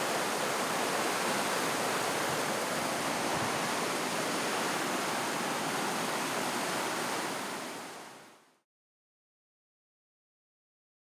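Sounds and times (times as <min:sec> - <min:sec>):
PowWow waterfall heard from a bridge: 0:00.0 - 0:08.6.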